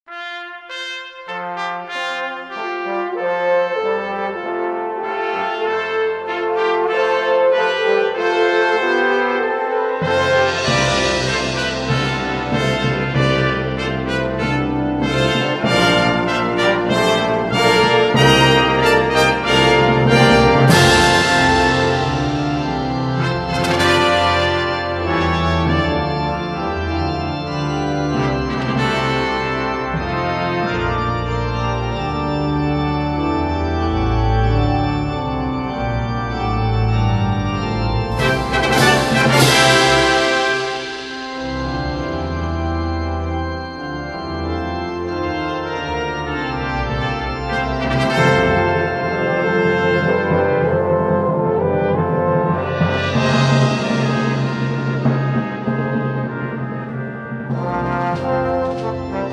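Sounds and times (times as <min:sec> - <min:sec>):
organ playing hymns: 0:00.1 - 0:59.3.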